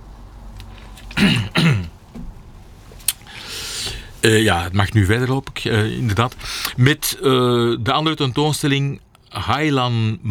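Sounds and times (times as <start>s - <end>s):
faint steady hiss: 0.0s - 7.4s
throat clearing: 1.0s - 2.0s
speech: 4.2s - 10.2s.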